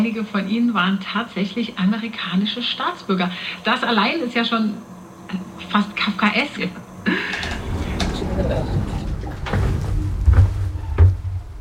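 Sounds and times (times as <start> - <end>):
speech: 0.0 - 7.6, 8.4 - 8.9
door closing: 7.1 - 11.5.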